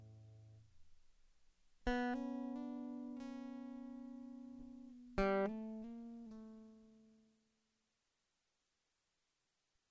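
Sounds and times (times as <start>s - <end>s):
guitar loop: 1.9s - 6.8s.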